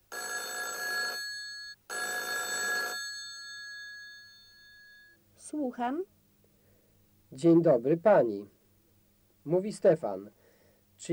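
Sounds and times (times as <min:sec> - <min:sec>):
telephone ringing with an electronic trill: 0:00.1 - 0:05.2
speech: 0:05.5 - 0:06.2, 0:07.3 - 0:08.6, 0:09.5 - 0:10.4.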